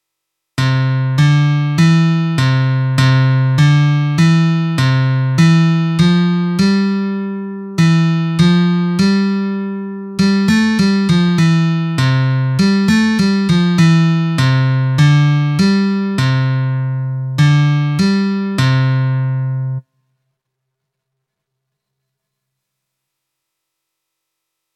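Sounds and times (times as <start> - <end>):
nursery rhyme melody: 0.6 - 19.8.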